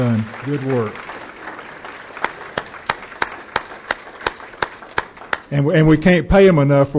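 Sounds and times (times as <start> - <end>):
speech: 0.0 - 1.1, 5.5 - 6.9
audience applause: 0.0 - 5.6.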